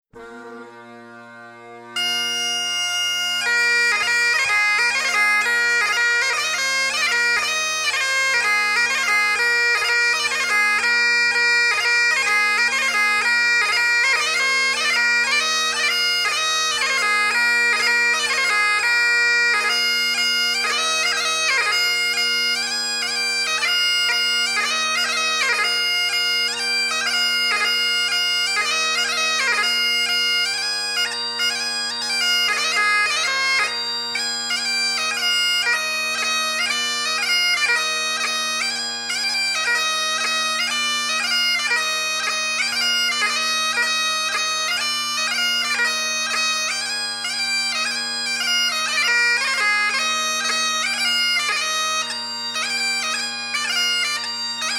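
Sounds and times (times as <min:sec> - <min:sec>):
bagpipes playing: 0:00.1 - 0:54.7.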